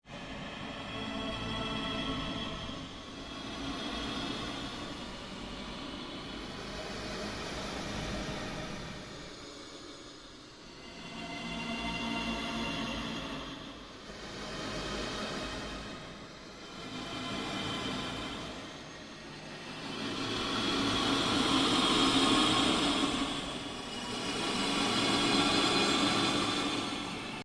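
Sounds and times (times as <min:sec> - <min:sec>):
ambient drone: 0:00.1 - 0:27.4.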